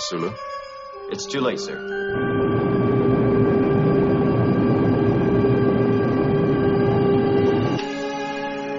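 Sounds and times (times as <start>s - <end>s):
wavering electronic tones: 0.0s - 8.6s
speech: 0.1s - 0.5s, 1.1s - 3.0s
shuttlecraft launch engine roar with layered humming tones: 2.1s - 7.9s.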